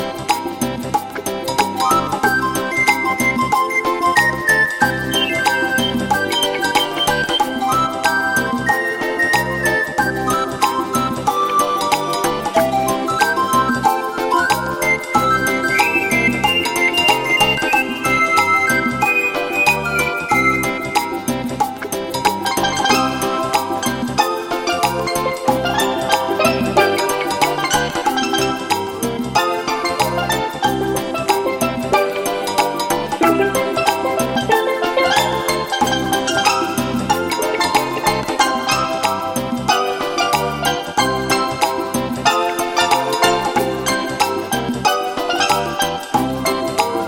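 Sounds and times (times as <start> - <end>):
reggae music: 0.0 - 47.0.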